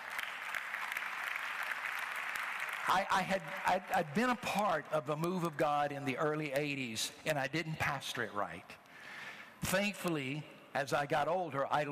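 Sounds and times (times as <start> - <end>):
golf claps, polite light applause: 0.0 - 4.0
speech: 2.9 - 11.9.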